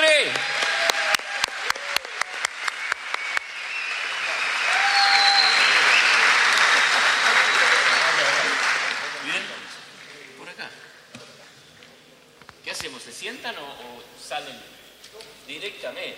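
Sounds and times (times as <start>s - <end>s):
loud audience applause: 0.0s - 10.4s.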